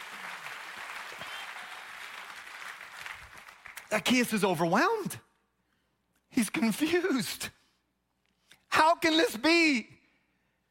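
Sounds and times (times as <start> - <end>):
audience clapping: 0.0 - 4.5
speech: 3.9 - 5.3, 6.4 - 7.6, 8.8 - 10.0.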